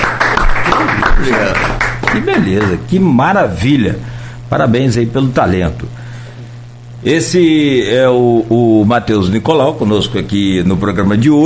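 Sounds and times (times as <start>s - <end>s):
applause: 0.0s - 2.8s
speech: 1.2s - 6.0s, 7.0s - 11.4s.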